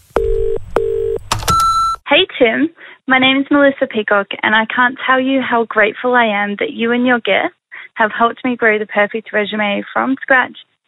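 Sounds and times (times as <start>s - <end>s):
telephone dialing tones: 0.2s - 2.0s
speech: 2.4s - 10.7s.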